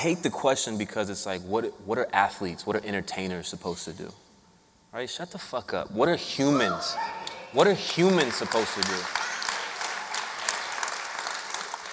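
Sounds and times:
speech: 0.0s - 4.2s, 4.9s - 9.2s
audience clapping: 7.5s - 11.9s.

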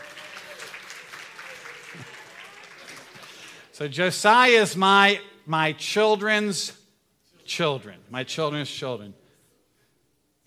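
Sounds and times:
round of applause: 0.0s - 3.7s
speech: 3.8s - 6.8s, 7.5s - 9.2s.

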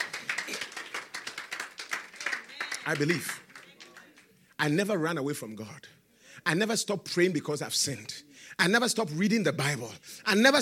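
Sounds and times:
church congregation clapping for the Lord Jesus during a sermon: 0.0s - 4.4s
speech: 2.9s - 3.4s, 4.6s - 10.6s.

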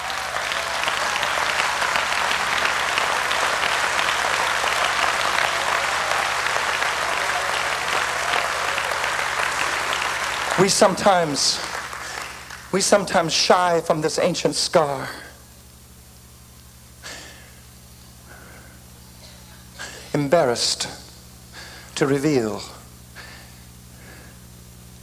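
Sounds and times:
audience clapping: 0.0s - 13.4s
speech: 10.6s - 11.7s, 12.7s - 15.2s, 20.3s - 21.0s, 22.0s - 22.8s.

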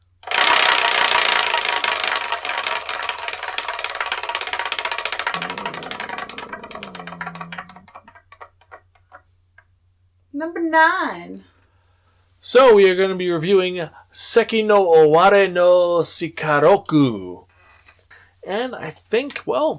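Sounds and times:
spinning wheel ticking: 0.2s - 8.2s
speech: 10.4s - 11.5s, 12.4s - 17.5s, 18.5s - 19.7s.

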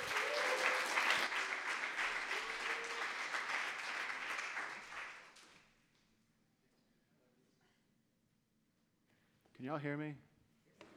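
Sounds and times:
raised voices cheering: 0.0s - 1.2s, 2.2s - 3.3s
crowd applause: 0.0s - 5.3s
speech: 9.6s - 10.3s.

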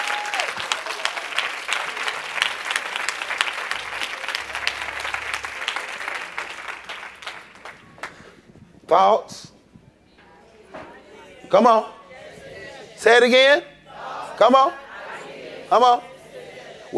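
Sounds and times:
audience clapping hands: 0.0s - 8.4s
speech: 8.9s - 9.5s, 11.5s - 12.0s, 13.0s - 13.7s, 14.4s - 14.8s, 15.7s - 16.1s.

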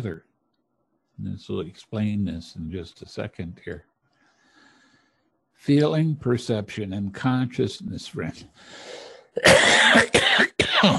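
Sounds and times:
speech: 0.0s - 0.3s, 1.2s - 3.9s, 5.6s - 10.9s
person coughing after swallowing something down the wrong way: 9.4s - 10.9s.

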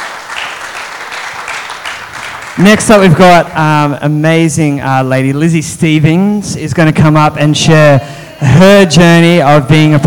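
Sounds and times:
audience clapping: 0.0s - 3.7s
speech: 2.6s - 10.0s.

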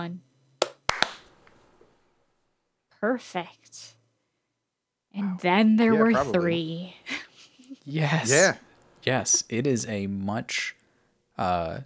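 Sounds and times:
speech: 0.0s - 0.3s, 3.0s - 4.0s, 5.2s - 7.2s, 7.8s - 10.8s, 11.4s - 11.8s
hand clap for audio sync: 0.6s - 1.8s.

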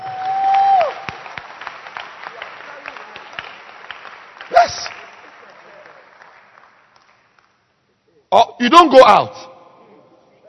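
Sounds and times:
audience applauding: 0.0s - 7.6s
speech: 8.4s - 9.4s.

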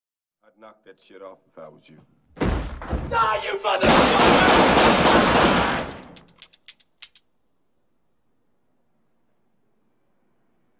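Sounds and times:
speech: 0.6s - 5.0s
gunfire in a movie scene: 3.8s - 6.4s.

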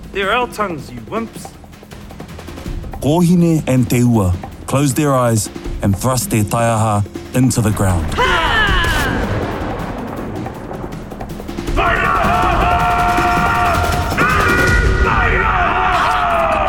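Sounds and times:
speech: 0.2s - 1.6s, 3.0s - 8.4s
thunderous cracking like branches snapping: 2.2s - 16.6s.

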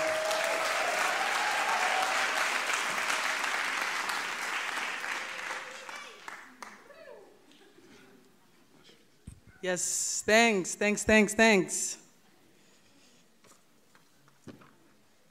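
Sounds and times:
audience applauding: 0.0s - 6.9s
speech: 9.6s - 12.0s.

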